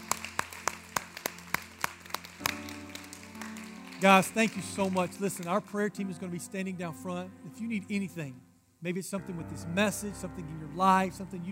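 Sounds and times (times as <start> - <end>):
audience clapping: 0.0 - 5.8
speech: 4.0 - 11.5.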